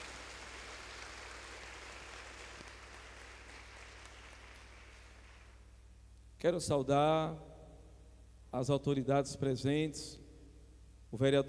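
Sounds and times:
round of applause: 0.0 - 5.7
speech: 6.4 - 7.5, 8.5 - 10.2, 11.1 - 11.4.

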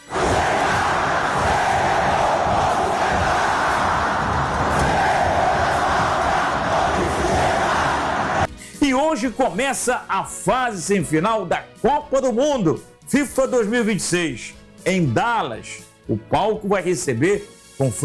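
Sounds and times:
football fans cheering in stadium: 0.0 - 8.5
speech: 9.2 - 18.0.

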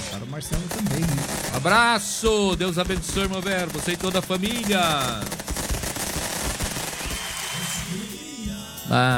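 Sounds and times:
firework rockets bursting: 0.0 - 8.4
speech: 0.2 - 5.4, 8.9 - 9.1
thin whistling tone overhead: 7.0 - 8.0.

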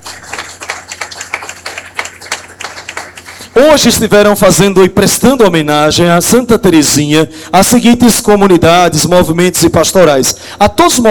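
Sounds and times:
round of applause: 0.0 - 3.6
speech: 3.6 - 11.0.

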